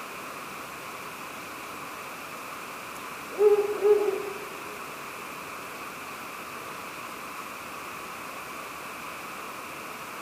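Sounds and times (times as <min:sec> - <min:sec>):
soft background hiss: 0:00.0 - 0:10.2
Ural owl hooting: 0:03.3 - 0:04.9.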